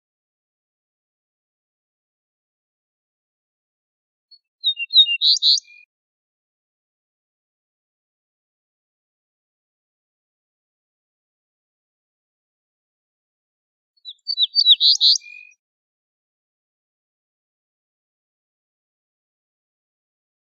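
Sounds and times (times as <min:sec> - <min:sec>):
ortolan bunting whistled and buzzy song phrase: 0:04.3 - 0:05.9, 0:14.0 - 0:15.6.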